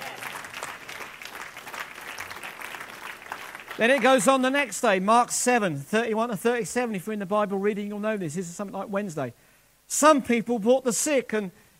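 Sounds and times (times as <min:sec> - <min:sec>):
crowd applauding: 0:00.0 - 0:04.7
speech: 0:03.8 - 0:11.6.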